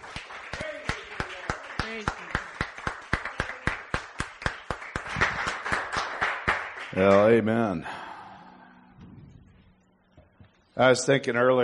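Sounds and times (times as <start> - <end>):
audience clapping and cheering: 0.0 - 7.8
speech: 7.0 - 8.0, 10.8 - 11.6.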